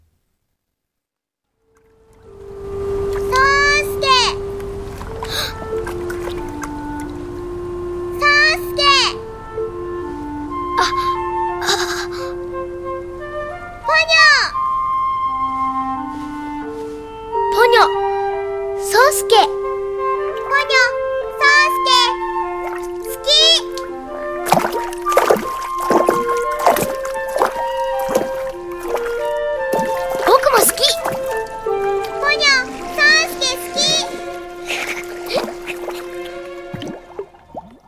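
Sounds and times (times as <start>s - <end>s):
Korean-language animated film theme song: 2.2s - 37.4s.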